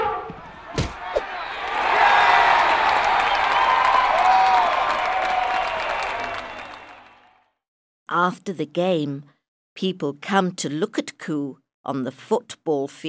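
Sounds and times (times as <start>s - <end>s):
sharp thuds: 0.3s - 1.2s
crowd applauding: 0.5s - 7.5s
speech: 8.2s - 13.0s.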